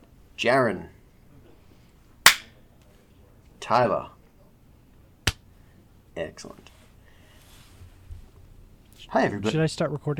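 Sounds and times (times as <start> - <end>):
speech: 0.4 - 1.0, 3.7 - 4.2, 6.2 - 6.7, 9.1 - 10.1
sync hand clap: 2.3 - 2.5.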